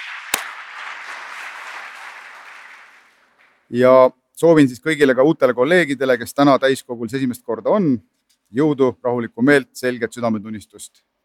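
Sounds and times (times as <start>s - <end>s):
audience applause: 0.0s - 3.6s
sharp louder clap: 0.0s - 3.6s
speech: 3.7s - 11.2s.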